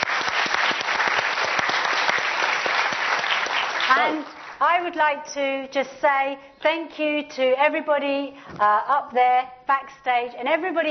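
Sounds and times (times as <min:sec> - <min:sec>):
crowd clapping: 0:00.0 - 0:04.6
speech: 0:03.9 - 0:10.8.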